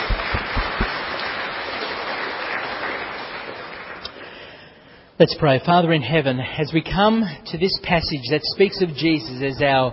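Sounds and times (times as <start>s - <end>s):
audience applause: 0.0s - 4.1s
speech: 5.2s - 9.9s.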